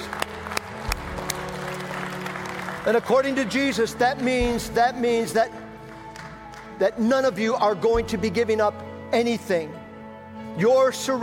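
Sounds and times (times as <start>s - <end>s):
audience applauding: 0.0s - 7.0s
speech: 2.8s - 5.6s, 6.8s - 9.8s, 10.6s - 11.2s.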